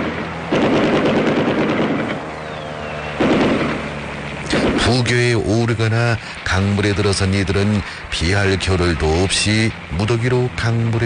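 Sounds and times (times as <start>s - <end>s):
aircraft strafing with machine-gun fire: 0.0s - 2.4s, 3.0s - 5.3s
faint high whine: 0.0s - 11.0s
speech: 4.9s - 11.0s.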